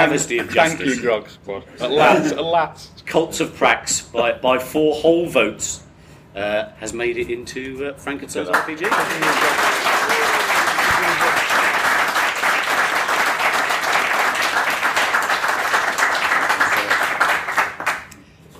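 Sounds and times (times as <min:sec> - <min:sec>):
speech: 0:00.0 - 0:05.8, 0:06.4 - 0:10.0
audience round of applause: 0:08.5 - 0:18.1.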